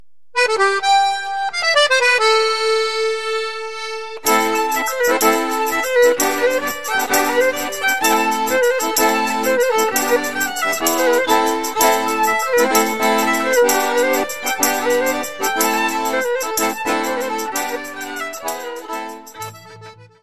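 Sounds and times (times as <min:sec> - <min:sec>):
French gigue dance music: 0:00.4 - 0:20.2.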